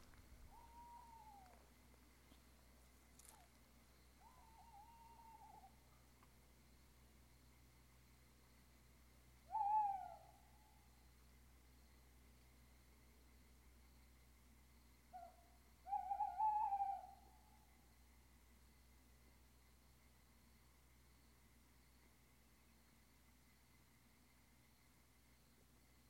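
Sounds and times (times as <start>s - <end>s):
owl hooting: 0.1s - 1.7s, 4.1s - 6.0s, 9.5s - 10.9s, 15.1s - 17.8s.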